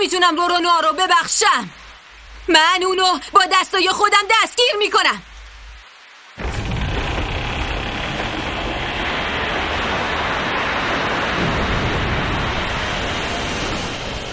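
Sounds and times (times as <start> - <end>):
speech: 0.0 - 1.8, 2.4 - 5.3
sudden storm: 6.2 - 14.3.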